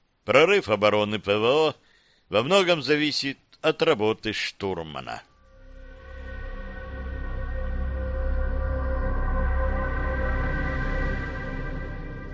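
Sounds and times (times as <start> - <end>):
speech: 0.2 - 5.3
aircraft cockpit alarm klaxon howling: 5.4 - 12.3.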